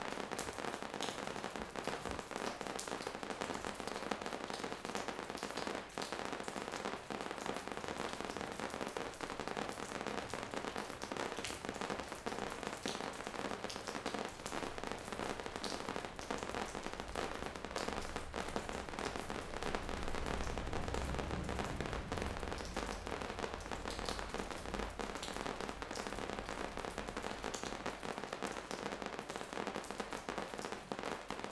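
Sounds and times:
rain in Curacao: 0.0s - 31.4s.

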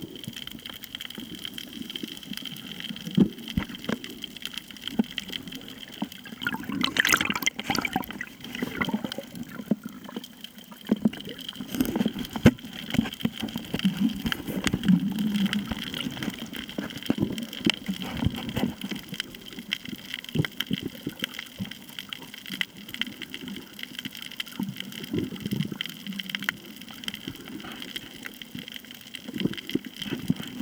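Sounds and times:
snorkeling at Koh Tao: 0.0s - 30.6s
beach at Koh Tao: 6.3s - 9.6s.

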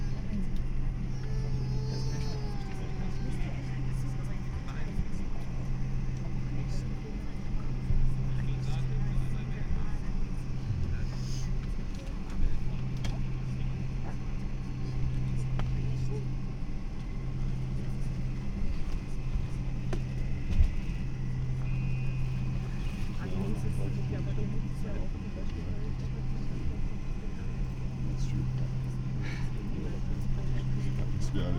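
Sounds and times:
train at Stansted: 0.0s - 31.5s.

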